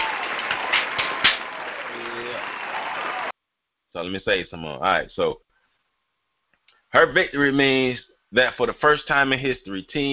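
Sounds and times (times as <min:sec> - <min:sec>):
crowd applause: 0:00.0 - 0:03.3
speech: 0:04.0 - 0:05.4, 0:06.9 - 0:10.1.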